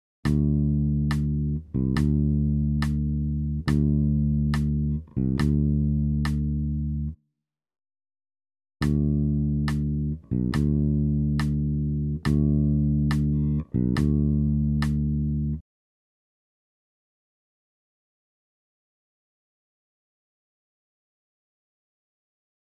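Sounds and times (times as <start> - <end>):
bass pattern: 0.3 - 7.2, 8.8 - 15.6.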